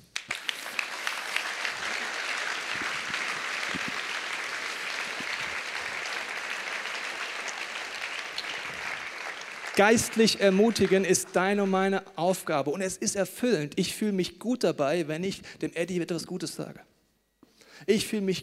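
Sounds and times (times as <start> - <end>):
audience applause: 0.0 - 11.8
speech: 9.8 - 16.9, 17.8 - 18.4.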